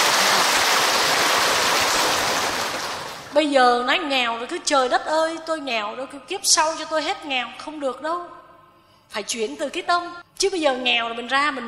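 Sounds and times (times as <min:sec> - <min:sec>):
audience applause: 0:00.0 - 0:03.3
speech: 0:03.4 - 0:08.4, 0:09.1 - 0:11.6.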